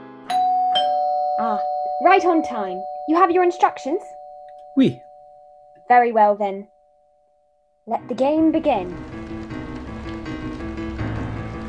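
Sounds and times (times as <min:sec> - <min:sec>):
speech: 0:01.4 - 0:04.1, 0:04.8 - 0:05.0, 0:05.9 - 0:06.7, 0:07.9 - 0:09.1
rainstorm: 0:08.3 - 0:11.6.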